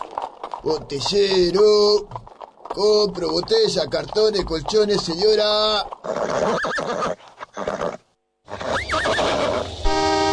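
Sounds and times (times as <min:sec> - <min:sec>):
speech: 0:00.6 - 0:02.2, 0:02.8 - 0:07.8
balking cart horse neighing: 0:05.4 - 0:09.7.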